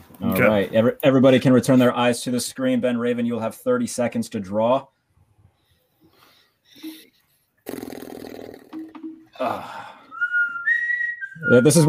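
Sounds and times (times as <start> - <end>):
speech: 0.4 - 5.0, 9.4 - 9.9, 11.4 - 11.8
short vocal sounds: 6.8 - 10.0
person whistling a game show theme tune: 10.0 - 11.8.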